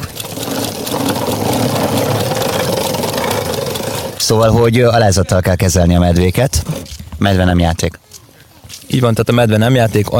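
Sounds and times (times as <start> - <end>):
child riding a plastic toy motorbike: 0.0 - 4.6
speech: 4.3 - 8.0, 8.9 - 10.1.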